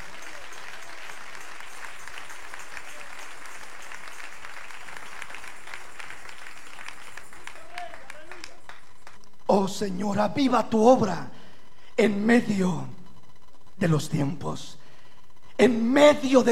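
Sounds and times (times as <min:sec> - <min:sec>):
audience applause: 0:00.0 - 0:09.2
speech: 0:09.5 - 0:11.4, 0:12.0 - 0:13.0, 0:13.8 - 0:14.8, 0:15.6 - 0:16.5.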